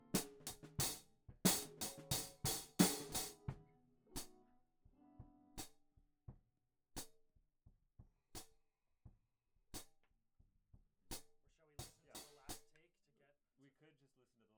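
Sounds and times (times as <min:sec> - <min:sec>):
hi-hat: 0:00.2 - 0:03.4, 0:11.8 - 0:12.7.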